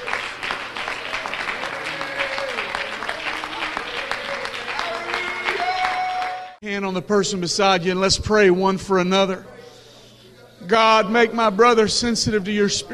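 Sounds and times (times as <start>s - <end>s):
audience applause, hand clapping in praise: 0.0s - 6.6s
speech: 6.6s - 9.5s, 10.7s - 12.9s.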